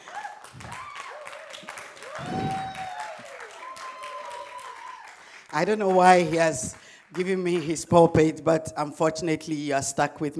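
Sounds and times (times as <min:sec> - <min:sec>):
congregation applauding in church: 0:00.0 - 0:08.3
speech: 0:05.5 - 0:10.3.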